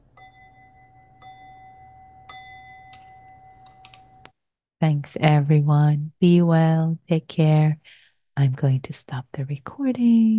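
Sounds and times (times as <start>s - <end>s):
bell struck and ringing: 0.0s - 4.3s
soft clicks: 2.9s - 4.1s
speech: 4.8s - 10.3s.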